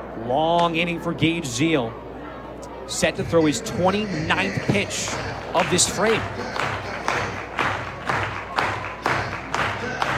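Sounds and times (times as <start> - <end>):
baseball stadium crowd noise: 0.0 - 10.1
speech: 0.2 - 2.0, 2.9 - 7.0
baseball stadium crowd clapping in rhythmic unison: 4.6 - 10.1.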